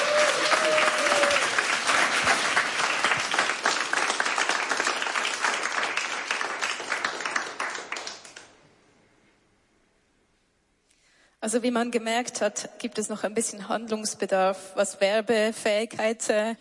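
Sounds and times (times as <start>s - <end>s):
audience applause for live band: 0.0s - 8.5s
speech: 11.4s - 16.6s.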